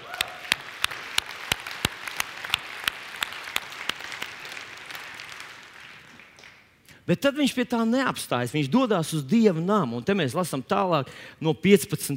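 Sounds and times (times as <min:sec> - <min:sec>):
audience applause: 0:00.0 - 0:06.7
speech: 0:07.1 - 0:12.1.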